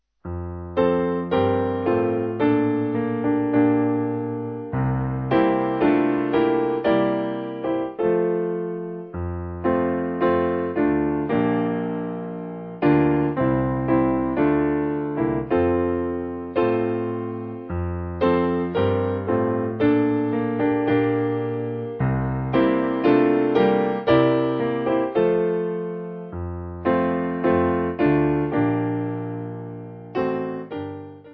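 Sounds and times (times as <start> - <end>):
piano backing music for churches: 0.2 - 31.3.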